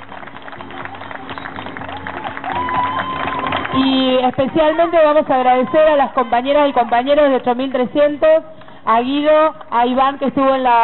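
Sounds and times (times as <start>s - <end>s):
applause: 0.0s - 7.1s
speech: 3.8s - 10.8s.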